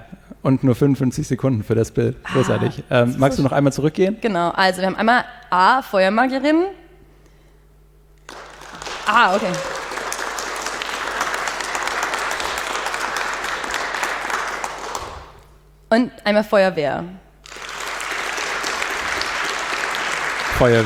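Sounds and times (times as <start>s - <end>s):
speech: 0.4s - 6.8s, 9.1s - 9.7s, 15.9s - 17.2s, 20.6s - 20.8s
audience applause and clapping for a vote: 8.3s - 15.5s, 17.4s - 20.8s.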